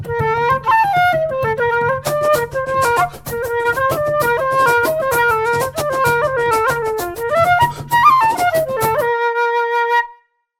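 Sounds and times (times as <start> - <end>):
bodhran: 0.0 - 9.9
F flute: 0.0 - 10.4
fast hard shoe dancing: 1.9 - 9.0.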